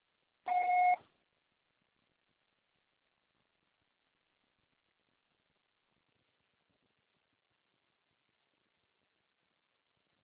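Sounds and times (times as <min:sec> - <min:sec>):
answering machine beep: 0:00.5 - 0:01.0.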